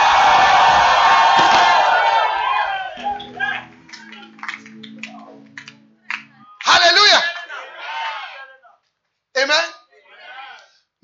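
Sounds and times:
audience shouting: 0:00.0 - 0:04.3, 0:06.5 - 0:08.6, 0:10.0 - 0:10.7
audience clapping: 0:00.0 - 0:07.6.

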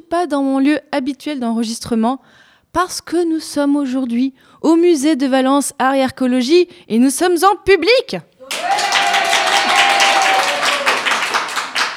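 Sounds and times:
speech: 0:00.1 - 0:08.9
live audience applauding at the Valence archaeology museum: 0:08.4 - 0:11.9.

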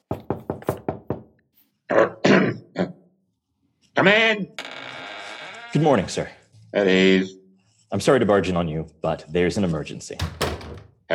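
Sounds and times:
knocking on a door: 0:00.1 - 0:01.3, 0:10.2 - 0:11.0
speech: 0:04.0 - 0:04.6, 0:05.7 - 0:10.4.

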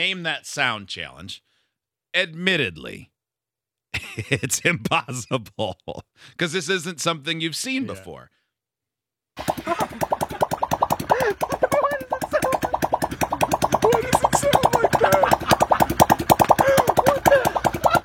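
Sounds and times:
speech: 0:00.0 - 0:01.5, 0:02.1 - 0:03.1, 0:03.9 - 0:08.4
laughter: 0:04.0 - 0:06.1, 0:09.6 - 0:10.0, 0:11.0 - 0:12.8, 0:13.8 - 0:18.0
balloon stretched over a car tailpipe fluttering in the exhaust: 0:09.4 - 0:18.0.

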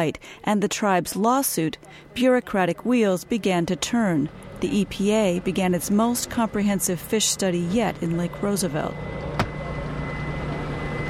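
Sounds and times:
speech: 0:00.0 - 0:09.3
boat motor droning on a lake: 0:03.4 - 0:11.0.

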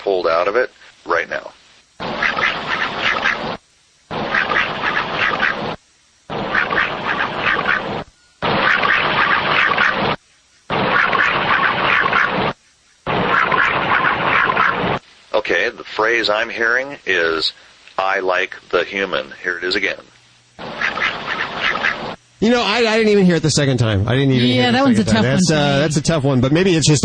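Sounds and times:
speech: 0:00.4 - 0:01.6, 0:15.7 - 0:20.1, 0:22.4 - 0:27.0
recording of ducks quacking: 0:02.0 - 0:15.0, 0:20.6 - 0:22.2.

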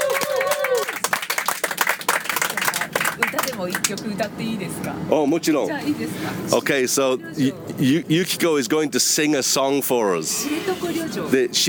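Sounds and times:
round of applause: 0:00.0 - 0:04.0
speech: 0:03.5 - 0:11.6.

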